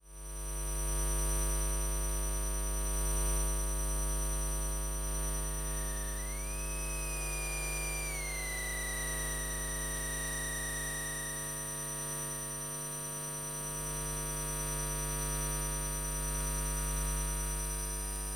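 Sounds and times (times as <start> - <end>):
electromagnetic field hum: 0.1 - 18.2.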